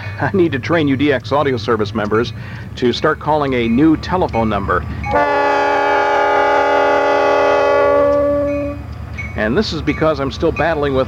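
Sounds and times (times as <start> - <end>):
train passing: 0.0 - 11.0
speech: 0.2 - 5.3, 9.4 - 11.0.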